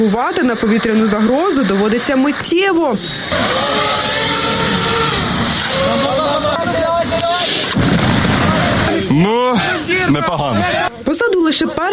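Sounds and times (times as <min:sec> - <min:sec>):
speech: 0:00.0 - 0:03.8, 0:09.5 - 0:10.9, 0:11.5 - 0:11.9
faint voices shouting: 0:03.1 - 0:11.2
simulated artillery shelling during training: 0:03.3 - 0:09.2.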